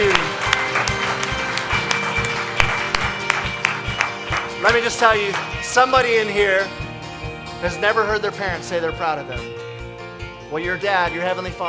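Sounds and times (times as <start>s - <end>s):
audience clapping: 0.0s - 6.1s
speech: 4.6s - 6.8s, 7.6s - 9.6s, 10.5s - 11.6s.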